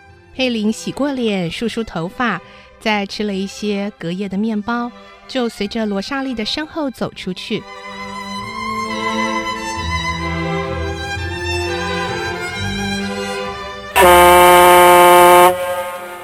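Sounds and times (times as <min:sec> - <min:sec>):
speech: 0:00.4 - 0:08.0
factory whistle blowing: 0:14.0 - 0:16.2
steady droning tone: 0:14.0 - 0:16.2.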